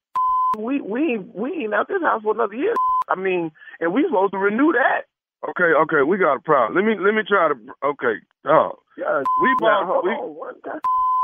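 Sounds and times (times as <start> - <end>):
speech: 0.5 - 11.0
electronic telephone tones while a call is placed: 9.2 - 9.8, 10.8 - 11.2.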